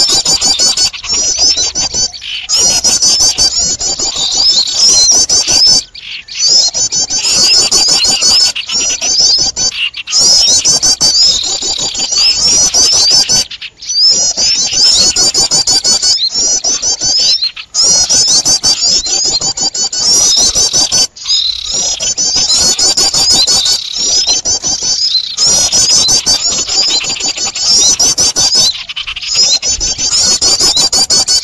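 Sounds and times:
birds chattering in high squeaky notes: 0:00.0 - 0:31.4.

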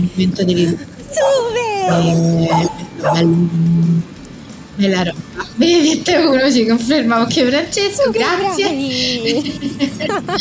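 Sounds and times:
speech: 0:00.0 - 0:04.1, 0:04.8 - 0:10.3
laughter: 0:00.4 - 0:02.2, 0:05.3 - 0:06.1, 0:08.4 - 0:10.3
two dogs that escaped from their dog sitter yipping and whimpering: 0:01.0 - 0:03.4.

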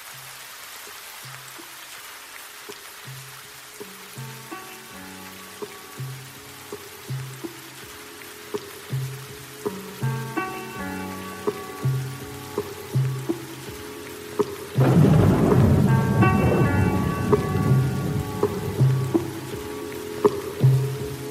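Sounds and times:
steady rain: 0:00.0 - 0:21.2
soft steady musical beat with sustained tones: 0:02.7 - 0:21.2
deep roll of thunder: 0:14.8 - 0:21.0.

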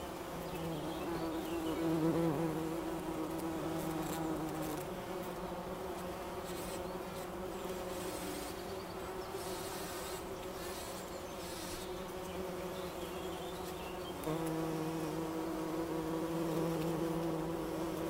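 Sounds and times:
bumblebee buzzing: 0:00.0 - 0:18.0
soft background hiss: 0:00.0 - 0:18.0.

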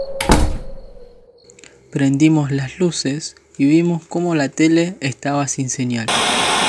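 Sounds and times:
house door slammed shut: 0:00.1 - 0:01.1
speech: 0:01.9 - 0:06.5.

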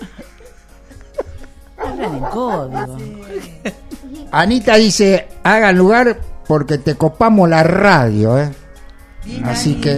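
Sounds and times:
laughter: 0:00.0 - 0:04.6
dog yipping and whining: 0:01.8 - 0:03.0
speech: 0:02.0 - 0:08.6, 0:09.2 - 0:09.9.

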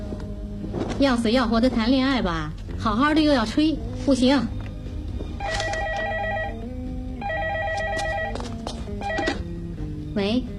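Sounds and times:
speech: 0:01.0 - 0:04.6, 0:10.2 - 0:10.5
telephone ringing with a bright electronic tone: 0:05.4 - 0:09.5.

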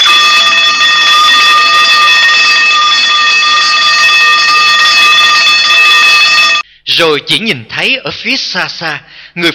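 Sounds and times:
nurse call alarm bell ringing: 0:00.0 - 0:06.6
speech: 0:07.0 - 0:09.5.

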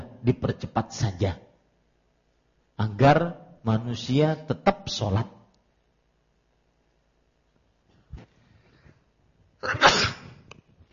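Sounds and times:
speech: 0:00.2 - 0:01.4, 0:02.8 - 0:05.4, 0:09.6 - 0:10.0
sneeze: 0:09.6 - 0:10.4.

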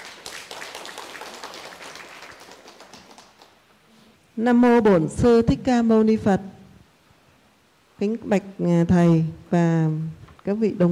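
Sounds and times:
crowd applauding: 0:00.0 - 0:03.7
speech: 0:04.4 - 0:06.6, 0:08.0 - 0:10.8.

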